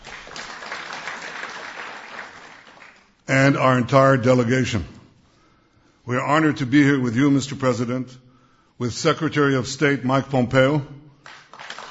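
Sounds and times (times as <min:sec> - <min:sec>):
audience clapping: 0:00.0 - 0:03.2, 0:11.2 - 0:11.8
speech: 0:03.3 - 0:05.0, 0:06.1 - 0:08.2, 0:08.8 - 0:11.0.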